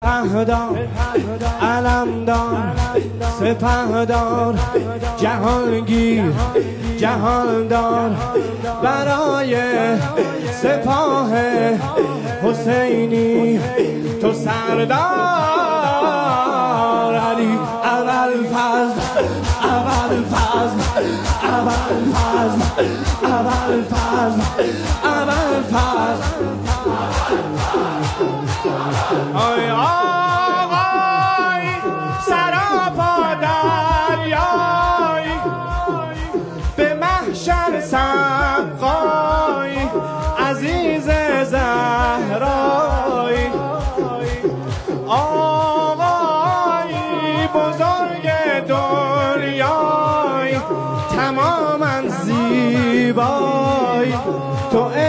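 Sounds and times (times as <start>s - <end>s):
devotional singing: 0.0s - 55.0s.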